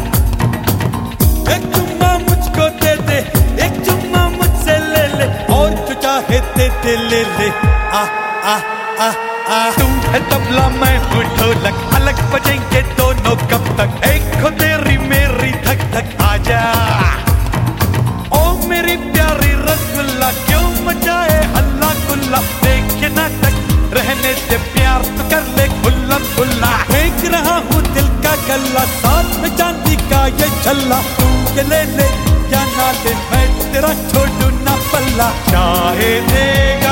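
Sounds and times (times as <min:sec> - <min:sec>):
tabla: 0:00.0 - 0:08.1, 0:09.8 - 0:36.8
dholak drum: 0:00.0 - 0:08.5, 0:09.7 - 0:36.8.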